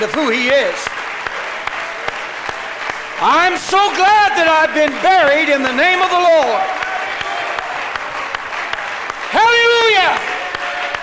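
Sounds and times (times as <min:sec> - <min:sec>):
speech: 0:00.0 - 0:00.9, 0:03.2 - 0:06.8
audience hand clapping applause: 0:00.0 - 0:11.0.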